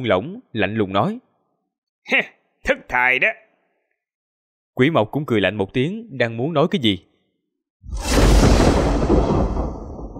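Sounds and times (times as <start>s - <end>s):
speech: 0.0s - 1.2s, 2.0s - 3.4s, 4.8s - 7.1s
thunder crash: 7.9s - 10.1s.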